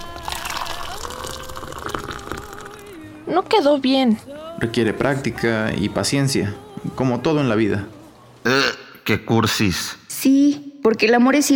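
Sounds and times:
espresso shot pouring into a cup: 0.0 - 3.0
speech: 3.3 - 11.5.

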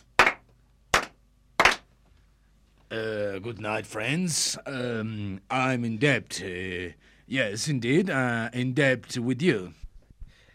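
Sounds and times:
slow sharp claps: 0.0 - 2.0
speech: 2.9 - 9.8.

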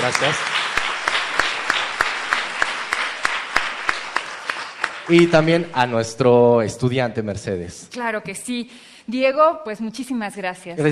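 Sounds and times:
speech: 0.0 - 0.5, 5.1 - 10.9
applause: 0.0 - 6.1.

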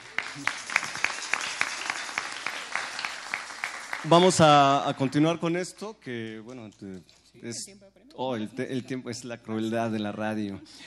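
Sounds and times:
audience applause: 0.0 - 5.4
speech: 0.4 - 0.6, 4.0 - 10.8.

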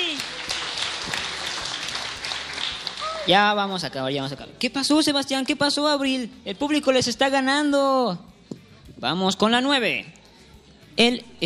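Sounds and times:
audience applause: 0.0 - 3.3
speech: 3.2 - 8.3, 9.0 - 10.2, 11.0 - 11.4.

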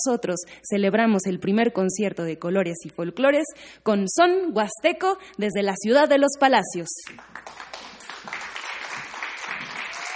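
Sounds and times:
speech: 0.0 - 7.7
audience applause: 7.1 - 10.1.

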